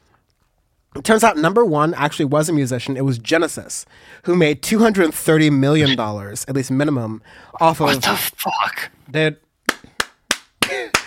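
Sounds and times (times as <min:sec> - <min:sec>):
speech: 0:01.0 - 0:09.4
hands clapping: 0:09.6 - 0:11.0.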